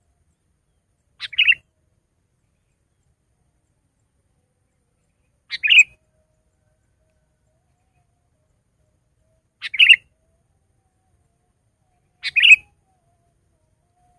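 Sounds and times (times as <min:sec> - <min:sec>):
Sooty-headed bulbul song of short bubbly phrases: 0:00.7 - 0:01.7, 0:04.7 - 0:08.2, 0:09.2 - 0:10.3, 0:11.9 - 0:13.3.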